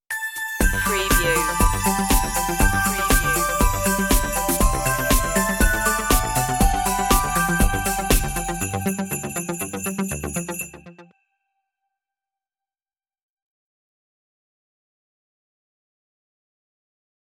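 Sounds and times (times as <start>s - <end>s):
synthified Christmas stinger intro: 0.1s - 11.2s.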